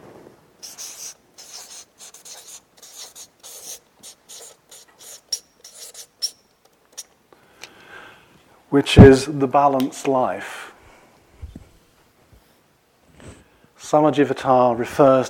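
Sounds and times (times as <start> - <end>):
writing on a board: 0.6 - 7.0
speech: 8.7 - 10.6, 13.9 - 15.2.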